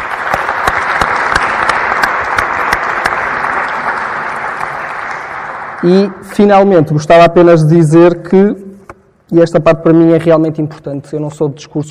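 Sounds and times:
audience applause: 0:00.0 - 0:06.2
speech: 0:05.8 - 0:08.7, 0:09.3 - 0:11.8.

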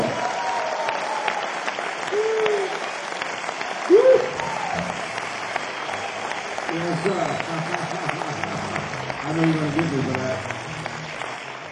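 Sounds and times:
audience applause: 0:00.0 - 0:11.7.

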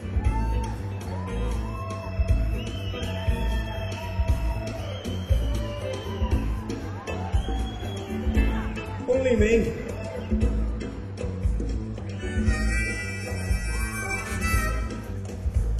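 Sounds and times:
whoops and shouts: 0:00.0 - 0:09.0, 0:12.2 - 0:15.3
large crowd roaring and cheering in a big hall: 0:00.0 - 0:15.7
speech: 0:09.2 - 0:09.8.

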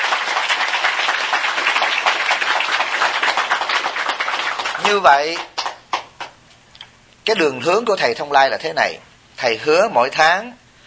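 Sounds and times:
audience applause: 0:00.0 - 0:06.3
speech: 0:04.9 - 0:05.5, 0:07.2 - 0:10.6.

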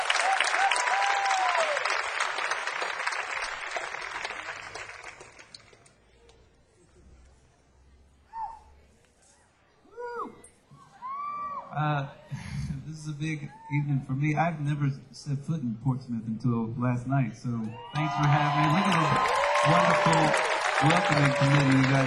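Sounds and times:
audience applause after a performance: 0:00.0 - 0:05.9, 0:17.9 - 0:22.0
speech: 0:13.2 - 0:22.0.

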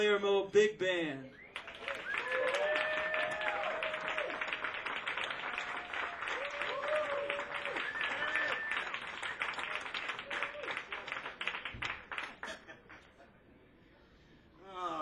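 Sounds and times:
speech: 0:00.0 - 0:02.5
audience applause welcoming a big band to the stage: 0:01.6 - 0:12.9.

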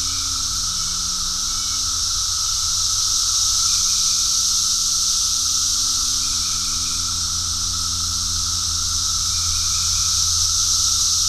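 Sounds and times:
low steady hum: 0:00.0 - 0:03.1, 0:05.6 - 0:11.2
cicadas droning: 0:00.0 - 0:11.2.

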